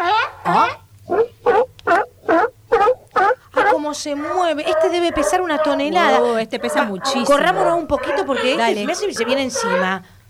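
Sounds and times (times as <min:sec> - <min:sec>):
sea lion vocalizing: 0:00.0 - 0:10.2
speech: 0:04.0 - 0:10.1.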